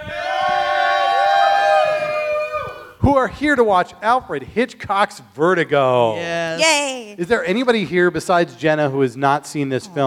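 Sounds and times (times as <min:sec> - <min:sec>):
small theater crowd cheering: 0:00.0 - 0:03.0
speech: 0:03.0 - 0:10.0.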